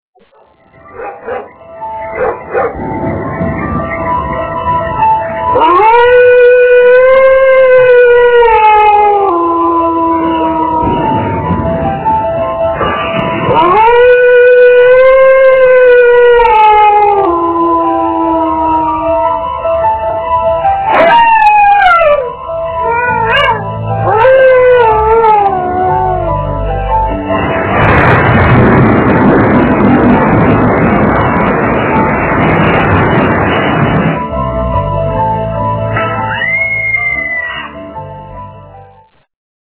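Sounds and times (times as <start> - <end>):
scary Halloween horror ringtone music: 0.5 - 39.0.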